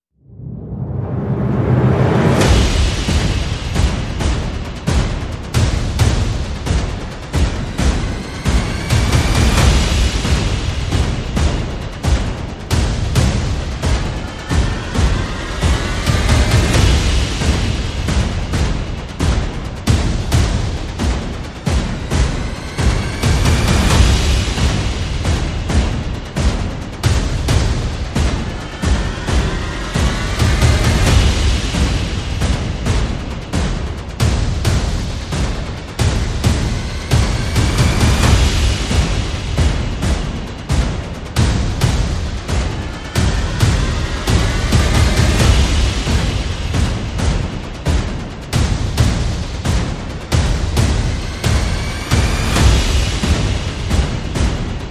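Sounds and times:
percussion and effects: 0.3s - 54.8s.

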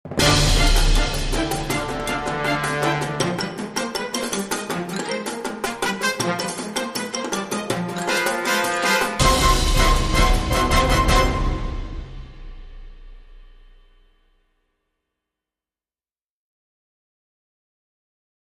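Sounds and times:
dramatic music short edit: 0.1s - 14.1s.

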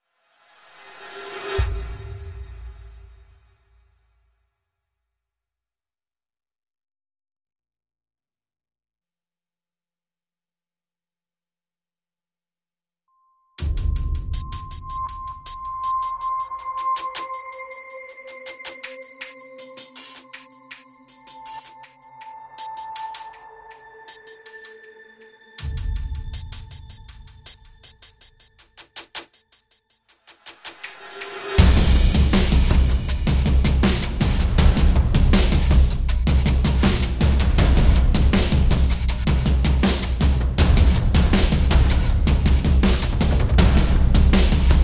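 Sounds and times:
drums: 13.6s - 24.9s, 25.6s - 44.8s.

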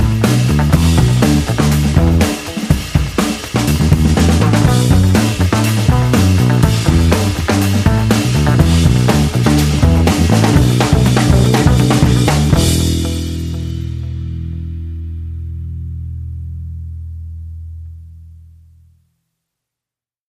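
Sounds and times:
drums: 0.0s - 15.8s
bass: 0.0s - 19.2s.

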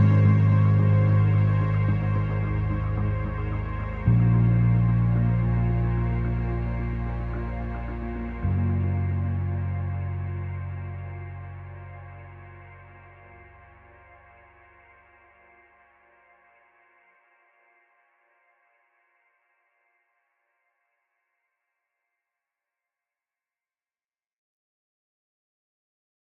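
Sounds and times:
music mix: 0.0s - 15.2s.

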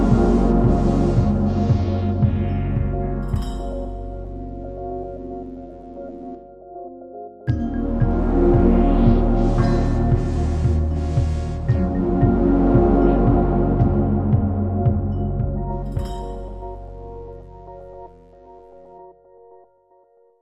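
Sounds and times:
beat: 0.0s - 5.0s, 7.5s - 17.9s.

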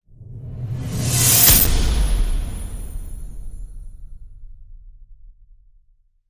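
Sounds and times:
steam whoosh at a terminal: 0.2s - 3.8s.

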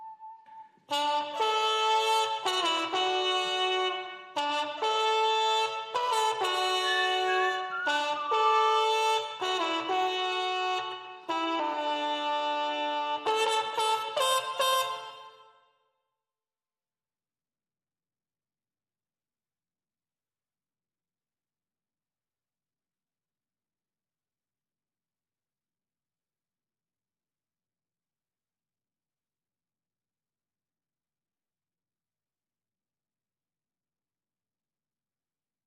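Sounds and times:
clean trumpets: 0.9s - 15.5s.

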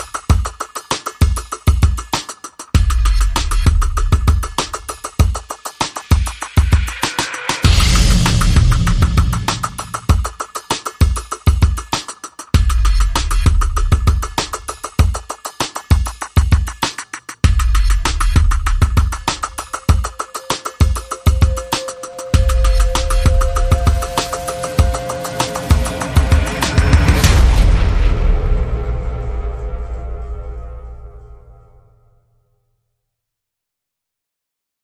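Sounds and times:
drums: 0.0s - 31.2s
sound effects: 6.7s - 10.2s, 19.2s - 32.2s.

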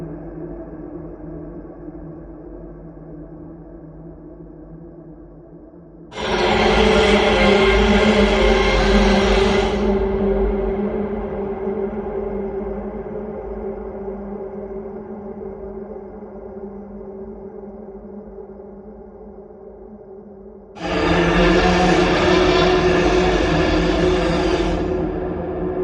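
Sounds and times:
scream: 6.1s - 12.2s, 20.8s - 25.7s.

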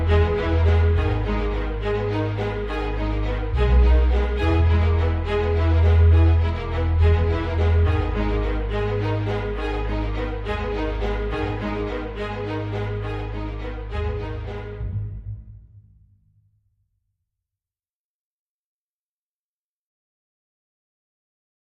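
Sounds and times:
string music underscore: 0.0s - 15.8s.

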